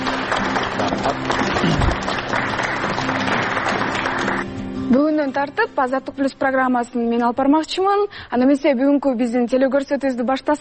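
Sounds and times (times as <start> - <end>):
studio audience applause on a television program: 0.0 - 4.6
speech: 5.4 - 10.6.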